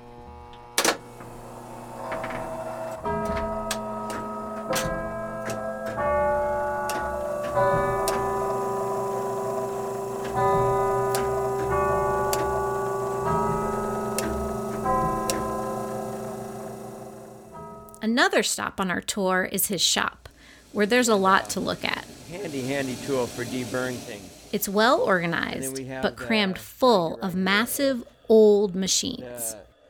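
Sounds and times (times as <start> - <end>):
chimes playing a melody: 2.2 - 18.0
speech: 18.1 - 29.6.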